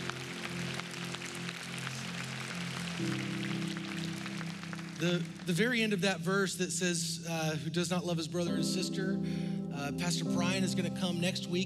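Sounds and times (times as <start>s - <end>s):
audience clapping: 0.0s - 6.2s
low keyboard chords: 0.0s - 11.6s
speech: 3.0s - 3.4s, 5.0s - 11.6s.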